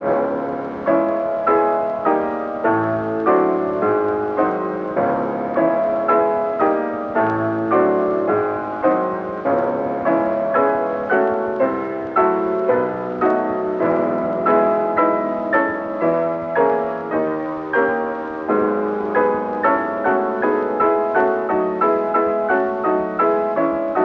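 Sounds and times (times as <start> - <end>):
piano prelude: 0.0 - 24.0.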